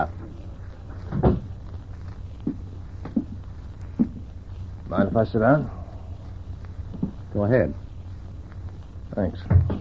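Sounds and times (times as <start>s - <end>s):
speech: 0.0s - 0.2s, 4.9s - 5.8s, 7.4s - 7.8s, 9.2s - 9.7s
door being shut: 1.1s - 1.5s.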